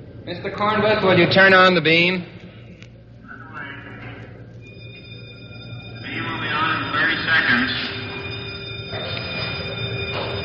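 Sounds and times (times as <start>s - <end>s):
speech: 0.3s - 2.3s
cyclotron warning bell ringing: 4.6s - 10.4s.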